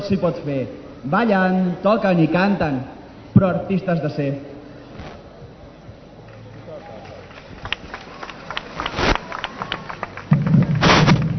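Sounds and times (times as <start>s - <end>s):
speech: 0.1s - 4.5s
salvo of firework bangers: 5.0s - 5.3s, 8.8s - 9.5s, 10.4s - 11.3s.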